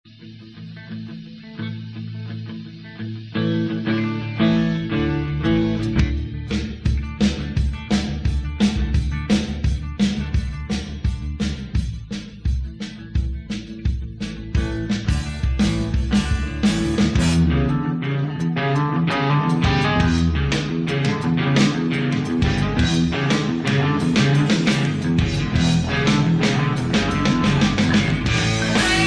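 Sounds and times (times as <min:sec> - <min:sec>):
rehearsal: 0:00.1 - 0:29.0.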